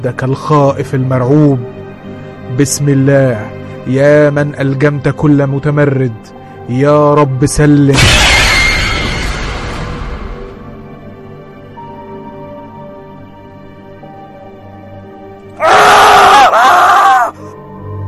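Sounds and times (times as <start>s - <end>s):
speech: 0.0s - 1.8s, 2.5s - 8.3s
man screaming in terror: 15.6s - 17.6s.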